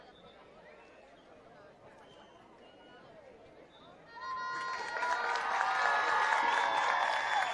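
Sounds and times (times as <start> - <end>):
audience applauding after a dance performance: 4.6 - 7.5.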